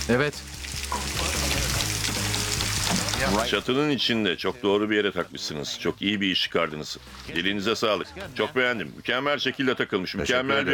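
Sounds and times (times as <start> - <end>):
water from a hose running into a roof gutter at low pressure: 0.0 - 4.0
speech: 0.1 - 1.1, 3.2 - 10.7.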